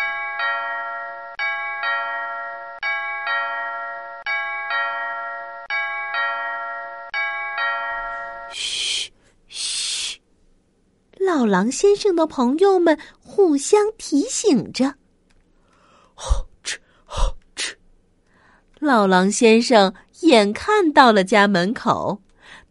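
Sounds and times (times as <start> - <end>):
big clock striking six o'clock: 0.0 - 8.5
speech: 11.4 - 15.0, 18.9 - 22.6.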